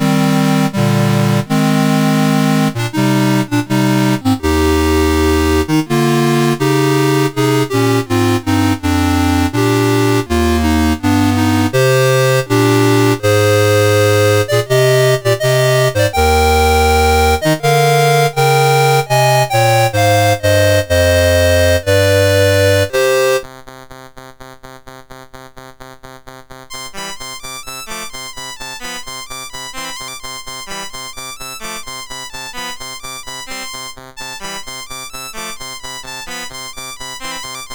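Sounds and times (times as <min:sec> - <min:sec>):
farandole music on CSG8580R5: 0:00.0 - 0:23.4.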